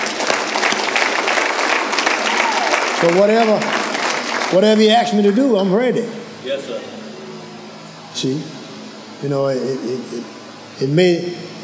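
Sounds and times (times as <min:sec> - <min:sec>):
audience applause: 0:00.0 - 0:04.9
speech: 0:03.0 - 0:03.8, 0:04.5 - 0:07.0, 0:08.2 - 0:08.6, 0:09.2 - 0:11.6.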